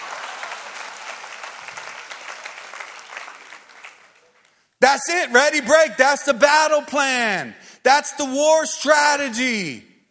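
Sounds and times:
audience clapping: 0.0s - 4.7s
speech: 4.9s - 9.9s.

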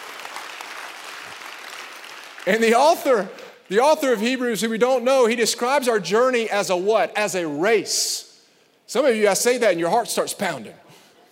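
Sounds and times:
crowd clapping: 0.0s - 3.7s
speech: 2.4s - 8.3s, 8.9s - 10.8s.

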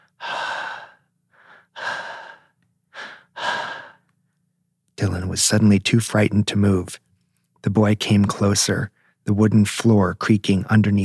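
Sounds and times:
hushed breathing: 0.0s - 4.0s
speech: 5.0s - 7.0s, 7.6s - 11.0s.

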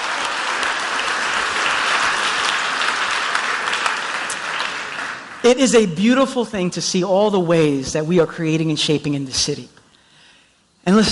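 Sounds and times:
audience applause: 0.0s - 5.5s
speech: 5.4s - 9.8s, 10.8s - 11.1s.

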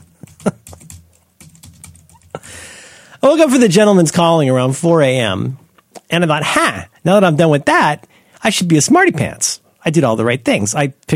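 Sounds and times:
keyboard typing while notes are taken down: 0.0s - 2.5s
speech: 3.2s - 11.1s.

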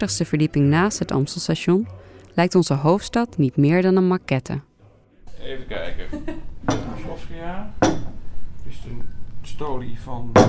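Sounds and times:
speech: 0.0s - 4.7s, 5.4s - 10.4s
laughter: 5.7s - 6.7s
glass bottle from the early 1960s clinking: 7.7s - 8.2s.

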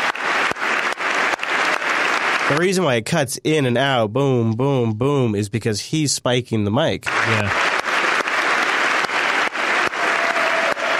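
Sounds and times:
audience clapping: 0.0s - 3.0s, 7.0s - 10.9s
speech: 2.5s - 7.8s.

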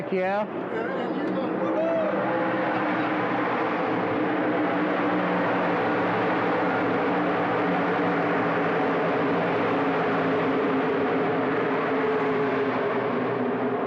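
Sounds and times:
crowd-like babble: 0.0s - 8.0s
race car engines roaring: 0.0s - 13.8s.

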